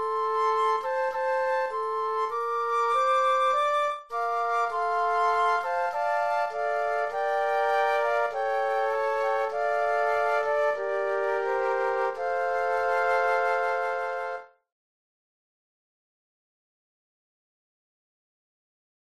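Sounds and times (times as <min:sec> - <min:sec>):
flute trio playing: 0:00.0 - 0:14.6.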